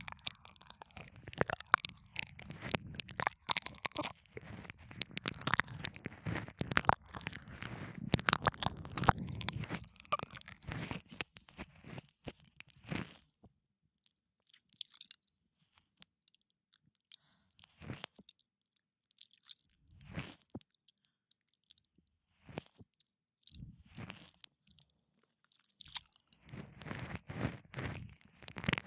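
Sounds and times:
ASMR ear licking in the left ear: 0.0 - 12.0, 26.5 - 28.8.

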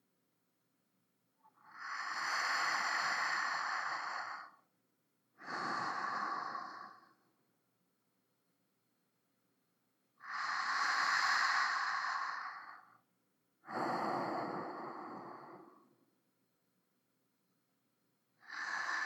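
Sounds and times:
sleeping breath: 1.5 - 4.6, 5.4 - 7.3, 10.2 - 13.0, 13.6 - 16.0, 18.4 - 19.0.

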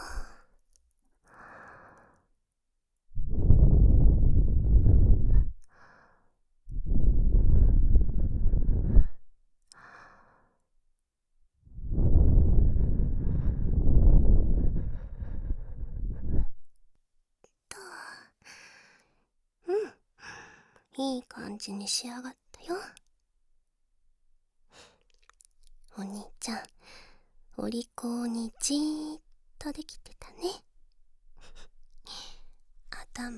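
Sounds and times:
breath blown onto something: 3.2 - 5.6, 6.8 - 9.2, 11.8 - 16.6
speech: 21.0 - 23.0, 26.0 - 26.8, 27.6 - 30.7, 33.2 - 33.3.

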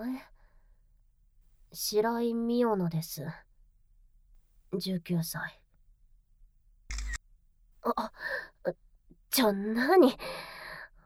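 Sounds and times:
speech: 0.0 - 0.3, 1.7 - 3.5, 4.7 - 5.6, 7.8 - 10.5
camera shutter click during an identity check: 6.9 - 7.2.

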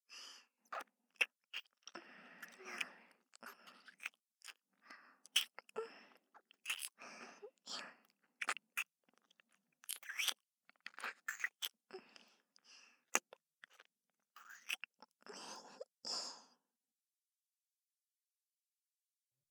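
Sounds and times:
gentle kiss: 0.7 - 4.6, 5.3 - 5.9, 6.5 - 7.0, 8.4 - 8.9, 9.9 - 11.7, 13.1 - 14.9.

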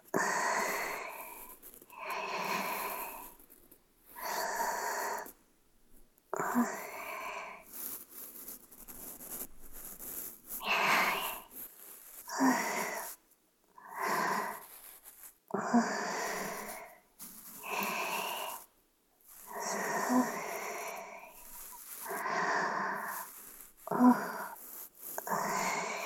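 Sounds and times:
ear cleaning sound effects: 0.0 - 5.3, 6.4 - 13.2, 13.8 - 26.0
breathing: 0.1 - 3.4, 6.4 - 8.0, 10.6 - 11.6, 12.2 - 13.2, 13.8 - 14.8, 15.6 - 18.7, 19.3 - 26.0.

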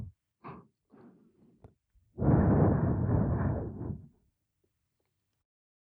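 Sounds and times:
blowing into the left ear ASMR: 2.2 - 4.1.

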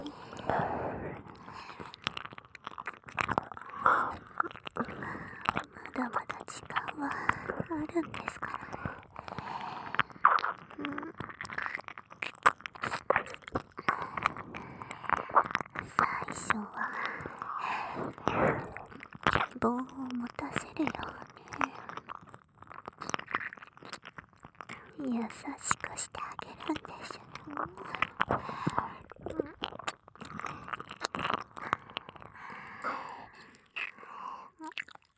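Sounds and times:
brainwashing voice: 0.0 - 1.3, 3.8 - 8.9, 15.8 - 22.0, 24.9 - 29.7
ear licking: 0.0 - 35.1.

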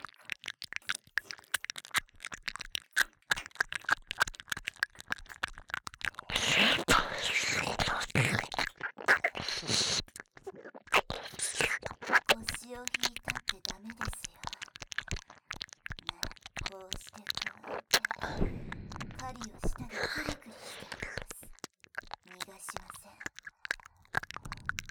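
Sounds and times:
ear licking: 0.0 - 24.8
sucking sounds: 6.2 - 14.6, 16.1 - 24.8.

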